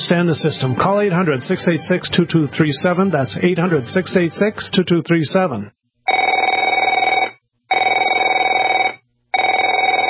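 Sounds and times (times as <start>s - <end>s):
speech: 0.1s - 6.2s
telephone ringing with a bright buzzy bell: 6.1s - 10.0s.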